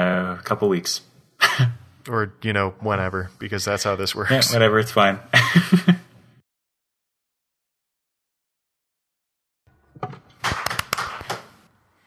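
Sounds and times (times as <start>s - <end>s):
speech: 0.5s - 6.0s
laughter: 5.3s - 6.1s
ceremonial hand claps: 10.2s - 11.7s.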